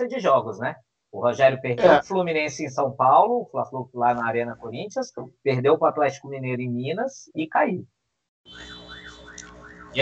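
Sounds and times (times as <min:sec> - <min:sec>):
speech: 0:00.0 - 0:08.8
ambulance siren passing by: 0:08.5 - 0:09.9.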